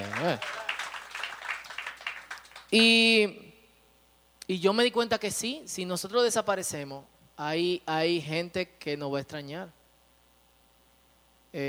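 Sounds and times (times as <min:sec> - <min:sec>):
audience applause: 0:00.0 - 0:02.7
speech: 0:00.2 - 0:00.6, 0:02.7 - 0:03.4, 0:04.5 - 0:09.8.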